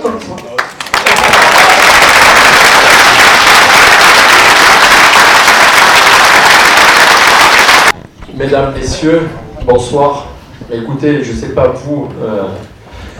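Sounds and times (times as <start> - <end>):
crowd applause: 0.6 - 8.0
speech: 8.5 - 12.7.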